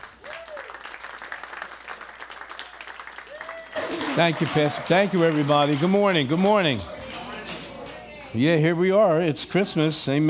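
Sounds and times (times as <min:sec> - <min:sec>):
church congregation applauding the lead pastor at a Sunday service: 0:00.0 - 0:08.4
speech: 0:04.2 - 0:07.0, 0:08.3 - 0:10.2.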